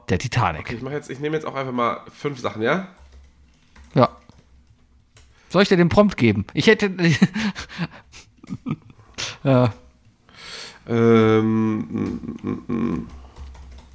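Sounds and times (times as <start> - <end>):
speech: 0.1 - 3.0, 3.9 - 4.2, 5.5 - 8.8, 9.4 - 9.8, 10.9 - 13.2
typing on a computer keyboard: 2.9 - 5.5, 12.8 - 13.9
breathy vocal sounds: 10.4 - 13.5.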